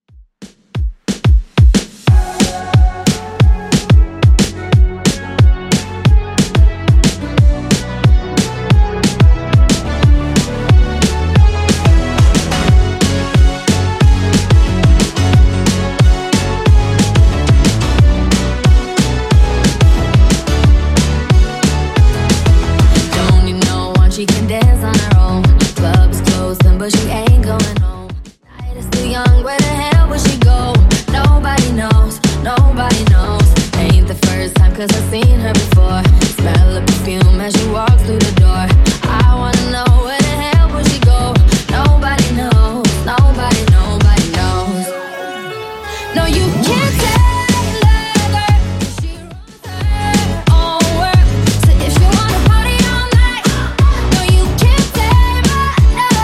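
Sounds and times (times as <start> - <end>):
Top 40 DJ-friendly clean track at 181 bpm: 0.8 - 56.2.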